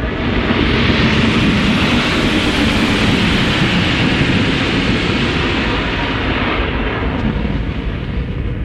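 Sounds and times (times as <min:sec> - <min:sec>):
retro-rockets roaring as a spacecraft lands on Mars: 0:00.0 - 0:08.6.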